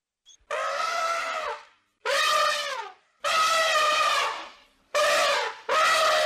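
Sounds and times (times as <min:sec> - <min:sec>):
elephant trumpeting: 0:00.5 - 0:06.2.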